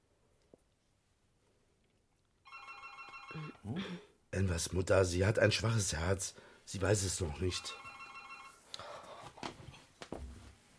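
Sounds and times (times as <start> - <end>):
telephone ringing: 2.5 - 3.6, 7.3 - 8.6
speech: 3.3 - 7.8.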